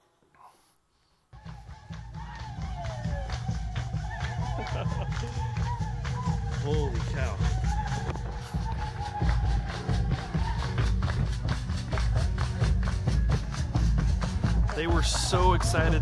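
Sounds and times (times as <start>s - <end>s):
drum line pounding: 1.4s - 15.9s
laughter: 4.1s - 5.8s
speech: 6.6s - 7.6s, 14.8s - 15.9s
crowd singing: 7.6s - 11.3s.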